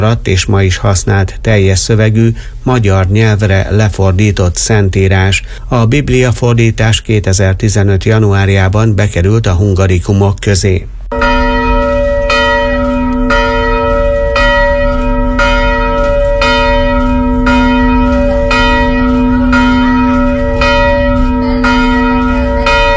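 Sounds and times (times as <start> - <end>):
speech: 0.0 - 11.4
church bells ringing in Vizsoly: 11.1 - 22.9.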